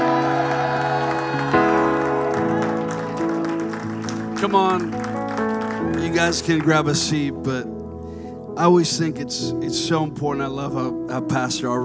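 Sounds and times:
audience applause and cheering: 0.0 - 7.1
speech: 4.4 - 5.0, 6.0 - 7.8, 8.6 - 11.8.

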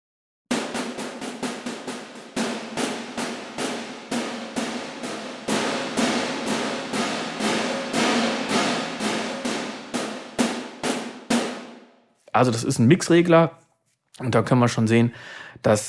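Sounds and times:
convolution reverb faded into instrument: 2.0 - 12.0
speech: 12.4 - 13.6, 14.2 - 15.8.

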